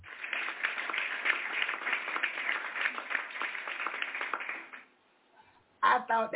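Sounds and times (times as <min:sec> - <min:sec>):
downloaded clapping sound effect: 0:00.0 - 0:04.8.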